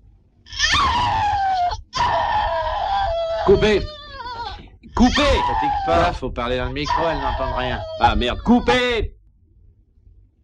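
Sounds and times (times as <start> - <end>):
woman screaming in film shower scene: 0.5 - 6.1, 6.9 - 8.8
speech: 3.5 - 4.0, 5.0 - 9.2.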